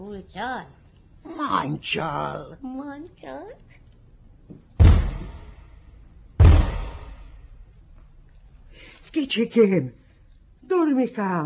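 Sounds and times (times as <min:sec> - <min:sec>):
speech: 0:00.0 - 0:03.8, 0:09.1 - 0:10.0, 0:10.7 - 0:11.4
gate being opened with heavy bangs: 0:04.8 - 0:05.8, 0:06.4 - 0:07.4.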